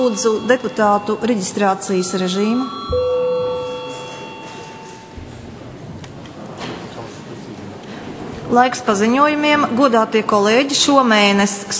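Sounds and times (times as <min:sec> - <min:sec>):
speech: 0:00.0 - 0:03.1, 0:08.5 - 0:11.7
parliament chamber bell ringing: 0:00.0 - 0:05.2.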